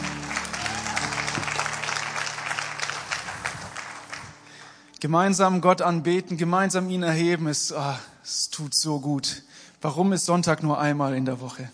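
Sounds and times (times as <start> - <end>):
audience applause for the band: 0.0 - 4.9
low sustained musical tone: 0.0 - 6.9
speech: 5.0 - 11.7.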